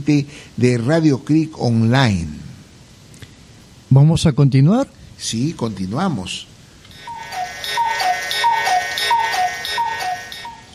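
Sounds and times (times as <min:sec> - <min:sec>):
speech: 0:00.0 - 0:02.4, 0:03.9 - 0:06.5
cuckoo clock two-note falling call: 0:06.9 - 0:10.7.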